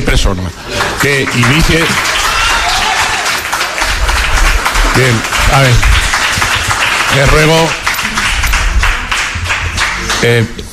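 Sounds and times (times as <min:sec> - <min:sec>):
speech: 0:00.1 - 0:02.2, 0:05.0 - 0:06.0, 0:07.1 - 0:07.8, 0:10.2 - 0:10.7
audience applauding in a council chamber during a municipal session: 0:00.6 - 0:10.6.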